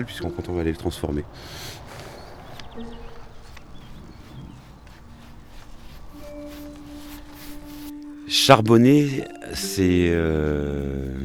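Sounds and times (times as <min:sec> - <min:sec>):
speech: 0:00.0 - 0:02.1, 0:02.8 - 0:03.0, 0:08.3 - 0:11.2
calèche carriage wheels rumbling: 0:00.0 - 0:08.5
horse hooves clip-clopping pulling a calèche carriage: 0:00.0 - 0:10.7
outdoor noise: 0:00.0 - 0:11.2.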